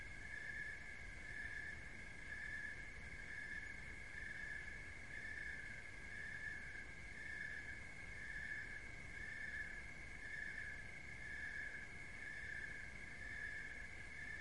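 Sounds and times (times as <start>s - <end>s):
cricket trilling in a steady buzz: 0.0s - 14.4s.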